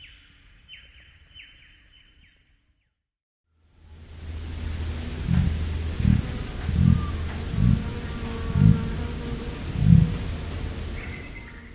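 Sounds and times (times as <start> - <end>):
low hum: 3.5 - 11.7
emu drumming pulses: 4.4 - 11.0.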